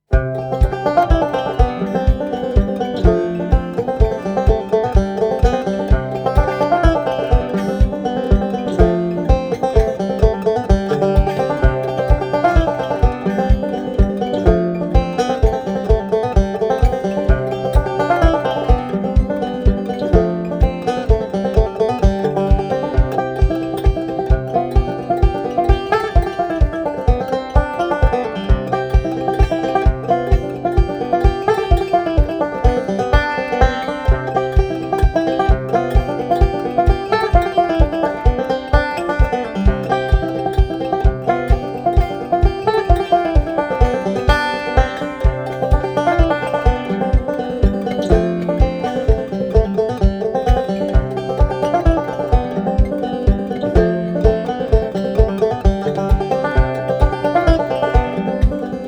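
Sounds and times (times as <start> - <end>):
banjo playing a polska: 0.0 - 58.8.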